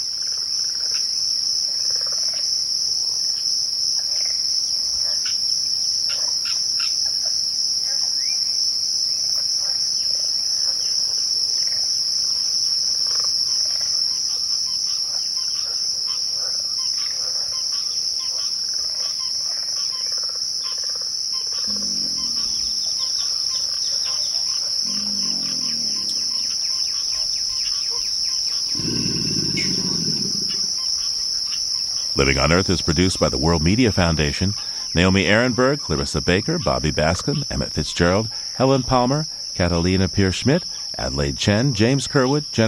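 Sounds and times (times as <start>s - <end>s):
pig frogs in a southern swamp: 14.1s - 39.8s
deep growl of an alligator: 21.6s - 27.3s, 28.6s - 31.0s
birds in a southern swamp: 21.6s - 31.2s
speech: 32.3s - 42.6s.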